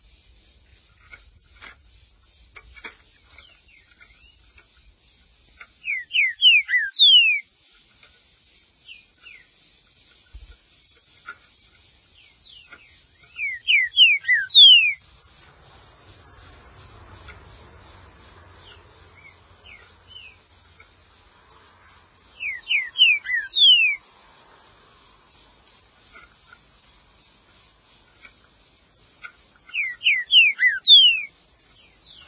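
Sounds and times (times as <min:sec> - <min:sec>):
green-winged saltator song: 0:03.1 - 0:07.6, 0:08.6 - 0:17.4, 0:18.6 - 0:20.9, 0:21.8 - 0:24.1, 0:29.2 - 0:32.2.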